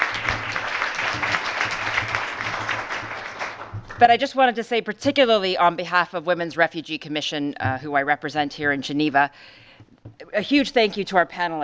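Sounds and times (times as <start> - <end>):
audience applause: 0.0 - 4.0
speech: 4.0 - 11.6.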